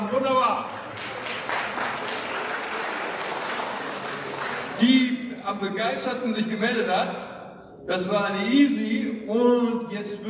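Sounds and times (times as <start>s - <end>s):
audience applause: 0.0s - 4.8s
speech: 0.2s - 1.1s, 4.8s - 7.3s, 7.9s - 10.2s.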